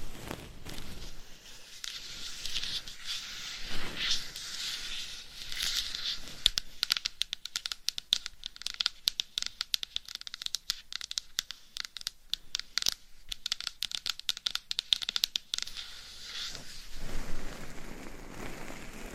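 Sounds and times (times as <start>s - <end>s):
scratchy rustle: 0.0s - 6.6s, 15.7s - 19.1s
quick sharp taps and clicks: 6.2s - 15.8s.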